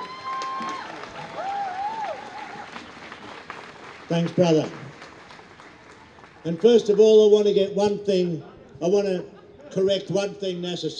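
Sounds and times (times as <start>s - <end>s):
rally crowd applause: 0.0s - 7.3s
speech: 4.1s - 4.8s, 6.4s - 10.9s.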